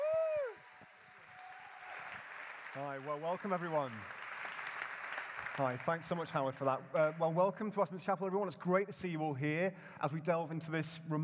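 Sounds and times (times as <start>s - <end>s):
audience applauding at Westminster Chapel: 0.0s - 7.3s
speech: 2.8s - 4.2s, 5.6s - 11.2s.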